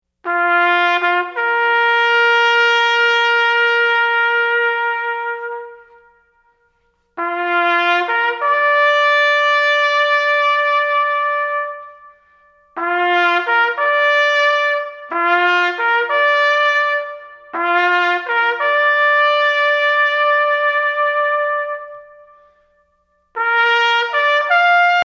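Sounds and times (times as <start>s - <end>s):
bugle call: 0.3s - 22.8s, 23.4s - 25.0s.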